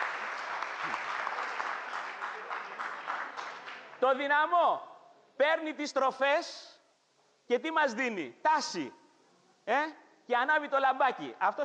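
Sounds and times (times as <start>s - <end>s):
audience applause: 0.0s - 4.1s
speech: 4.0s - 6.6s, 7.5s - 9.0s, 9.6s - 11.6s.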